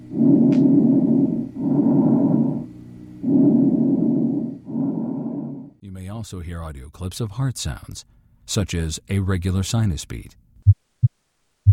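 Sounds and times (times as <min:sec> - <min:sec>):
bronchial breath sounds with rhonchi in a chest recording: 0:00.0 - 0:05.8
speech: 0:06.2 - 0:10.4.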